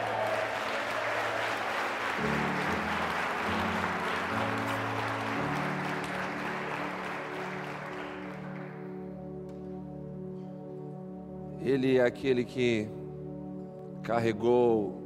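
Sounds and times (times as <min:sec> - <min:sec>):
audience clapping: 0:00.0 - 0:09.1
low keyboard or organ chords: 0:01.7 - 0:15.0
speech: 0:11.7 - 0:13.0, 0:14.1 - 0:15.0.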